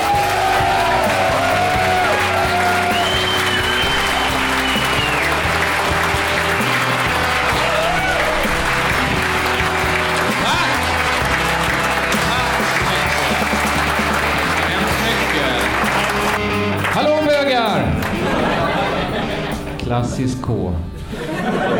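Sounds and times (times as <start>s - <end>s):
cheering and whoops: 0.0s - 5.6s, 7.2s - 10.7s
crowd applause: 0.0s - 19.8s
laughter: 0.3s - 16.5s, 17.6s - 19.9s, 21.1s - 21.7s
speech: 20.0s - 20.9s.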